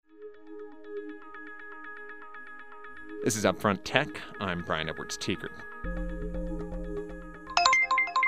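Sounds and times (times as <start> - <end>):
low tonal music: 0.1 - 8.2
speech: 3.2 - 6.2
Uber app ride-request notification chiming on a driver's phone: 7.6 - 8.2.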